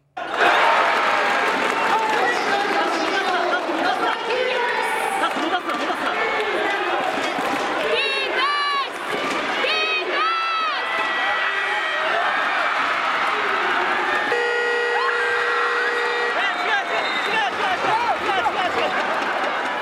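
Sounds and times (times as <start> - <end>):
basketball arena crowd cheering and applause: 0.0 - 19.8
noisy voices: 1.4 - 14.4, 16.0 - 19.8
long buzzer tone: 14.3 - 16.5.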